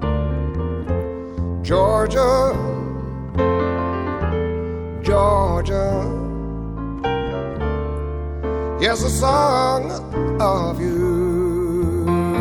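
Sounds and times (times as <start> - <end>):
cocktail piano: 0.0 - 12.3.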